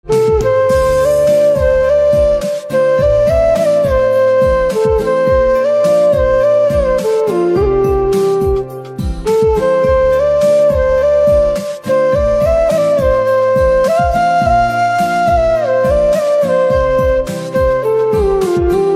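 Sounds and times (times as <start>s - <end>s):
flute: 0.0s - 18.9s.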